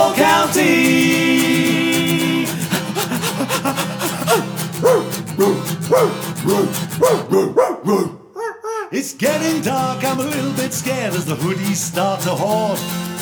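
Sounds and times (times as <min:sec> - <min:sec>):
laughter: 0:00.0 - 0:05.1
small dog yapping and barking: 0:04.2 - 0:08.7
speech: 0:09.4 - 0:13.1.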